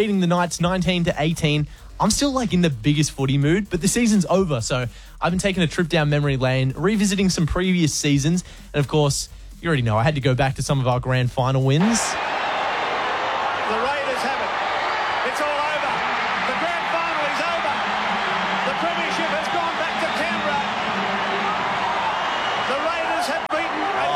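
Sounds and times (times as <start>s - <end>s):
speech: 0.0s - 12.4s
sharper shouts and whoops: 11.8s - 24.1s
stadium crowd cheering at football grand final: 11.8s - 24.1s.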